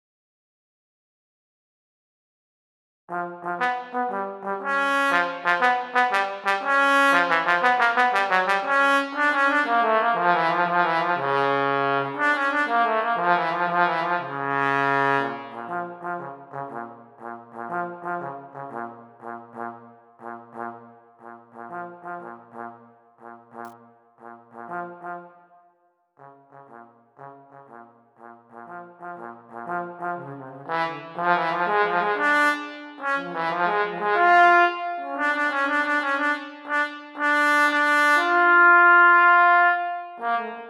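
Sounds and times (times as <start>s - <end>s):
trombone: 3.1s - 25.3s, 26.2s - 40.6s.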